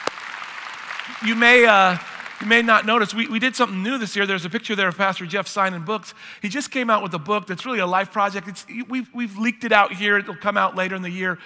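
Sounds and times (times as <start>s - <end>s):
crowd applauding: 0.0s - 2.9s
speech: 1.1s - 11.4s.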